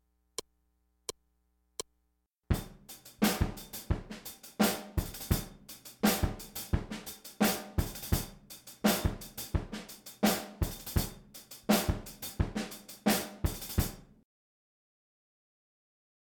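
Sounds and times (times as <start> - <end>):
fusion rhythms: 2.5 - 14.0.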